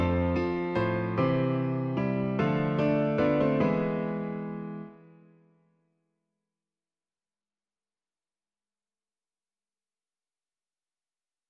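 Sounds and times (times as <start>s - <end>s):
piano: 0.0s - 5.8s.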